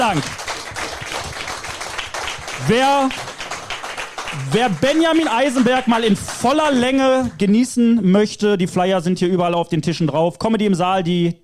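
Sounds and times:
speech: 0.0s - 0.5s, 2.6s - 3.3s, 4.3s - 11.4s
audience applause: 0.0s - 7.4s.

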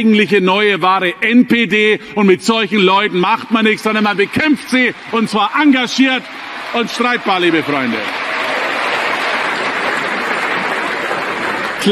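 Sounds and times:
speech: 0.0s - 8.3s
large audience applause: 2.5s - 11.9s.

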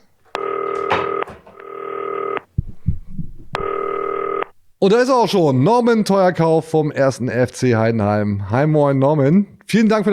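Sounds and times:
telephone call ringing: 0.3s - 2.5s, 3.6s - 4.6s
soft low thumps: 2.5s - 4.8s
speech: 4.8s - 10.1s.

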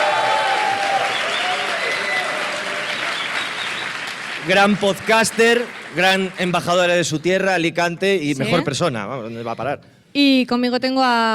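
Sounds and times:
applause: 0.0s - 7.2s
speech: 4.5s - 11.3s.

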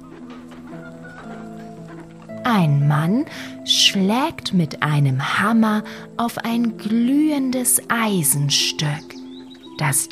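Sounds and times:
chickens clucking in a farmyard: 0.0s - 2.4s
speech: 2.4s - 9.2s, 9.8s - 10.0s.

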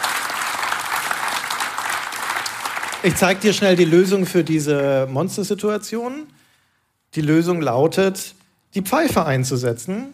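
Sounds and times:
applause: 0.0s - 4.9s
speech: 3.0s - 6.4s, 7.1s - 10.1s.

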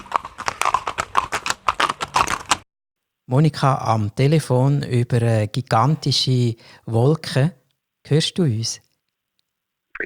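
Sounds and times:
pony hooves clip-clopping at a pony farm: 0.0s - 2.6s
speech: 3.3s - 8.8s.

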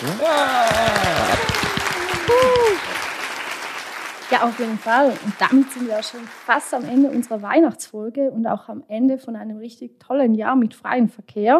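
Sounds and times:
applause: 0.0s - 7.6s
speech: 4.4s - 11.5s.

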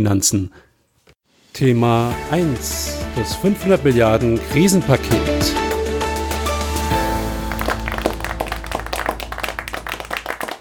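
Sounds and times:
speech: 0.0s - 0.7s, 1.6s - 5.6s
held musical chord: 2.1s - 10.4s
applause: 7.2s - 10.6s.

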